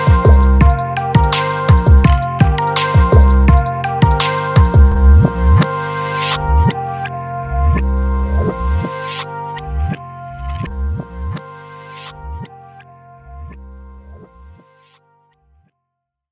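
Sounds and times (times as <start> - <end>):
instrumental type beat: 0.0 - 12.6.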